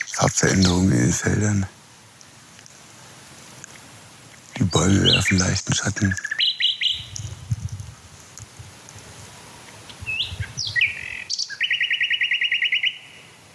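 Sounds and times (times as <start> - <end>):
male songbird singing over countryside of fields and forest edges: 0.0 - 13.5
speech: 0.2 - 1.8, 4.7 - 6.3.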